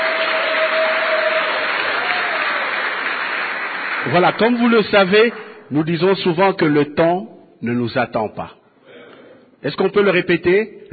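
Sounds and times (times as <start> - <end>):
audience applause at a live French-language show: 0.0 - 5.4
speech: 4.1 - 8.6, 9.6 - 10.9.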